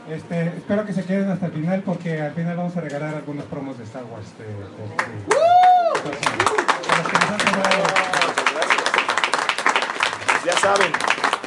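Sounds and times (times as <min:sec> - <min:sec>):
speech: 0:00.1 - 0:08.3, 0:10.5 - 0:11.2
audience clapping at a Panini Star Wars collectibles event: 0:05.0 - 0:11.4.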